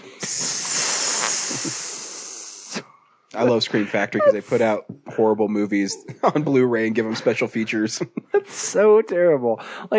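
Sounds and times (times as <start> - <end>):
person hissing like a snake: 0.0 - 2.9, 3.7 - 4.8
laughter: 3.4 - 8.8
speech: 3.4 - 9.9.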